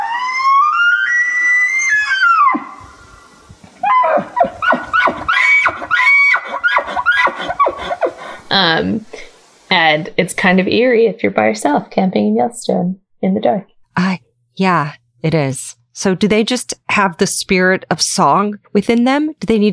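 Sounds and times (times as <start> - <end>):
elk bugling in a campsite: 0.0 - 9.0
speech: 8.6 - 9.1, 9.7 - 19.7.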